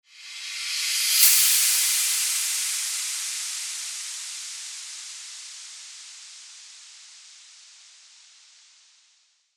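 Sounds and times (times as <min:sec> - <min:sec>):
whoosh: 0:00.1 - 0:03.9.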